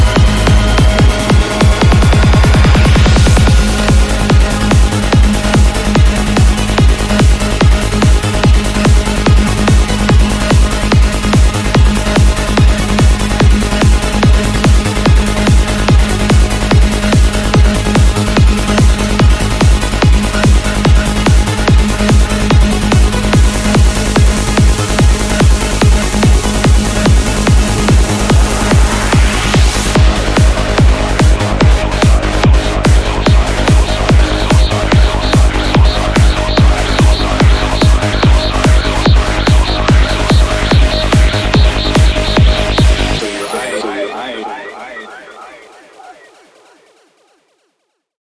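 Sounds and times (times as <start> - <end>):
digital bass: 0.0 - 47.8.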